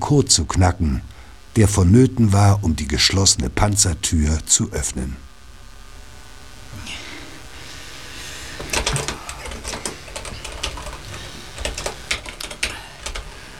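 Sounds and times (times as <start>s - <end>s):
speech: 0.1s - 5.3s
typing a password on a computer keyboard: 8.6s - 13.4s.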